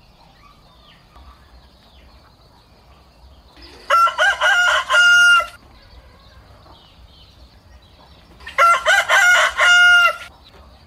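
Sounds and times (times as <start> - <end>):
rooster crowing: 3.7 - 6.3, 8.5 - 10.3.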